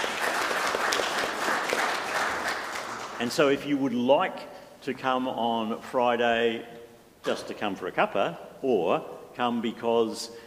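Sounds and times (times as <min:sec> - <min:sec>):
audience applause: 0:00.0 - 0:03.3
speech: 0:03.2 - 0:10.4.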